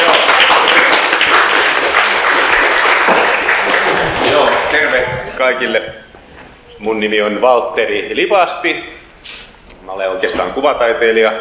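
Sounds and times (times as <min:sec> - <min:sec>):
small round of applause: 0:00.0 - 0:05.0
speech: 0:05.4 - 0:06.0, 0:06.8 - 0:11.4.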